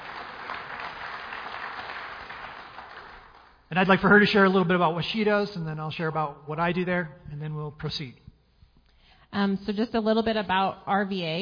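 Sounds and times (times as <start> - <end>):
audience clapping: 0.0 - 4.0
speech: 3.7 - 8.2, 9.3 - 11.4.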